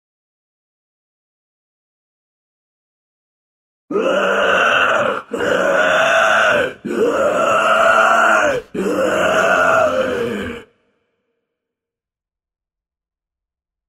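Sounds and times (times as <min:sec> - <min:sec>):
zombie moan: 0:03.9 - 0:10.8.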